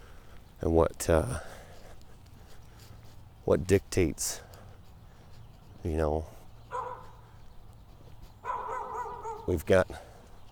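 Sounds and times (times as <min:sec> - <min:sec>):
speech: 0:00.6 - 0:01.5, 0:03.5 - 0:04.5, 0:05.8 - 0:06.4, 0:09.5 - 0:10.1
dog barking: 0:06.7 - 0:07.2, 0:08.4 - 0:09.6.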